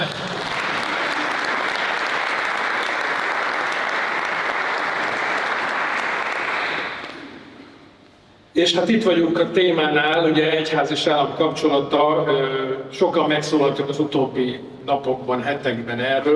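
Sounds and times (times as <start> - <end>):
audience applause: 0.0 - 7.5
speech: 8.6 - 16.3.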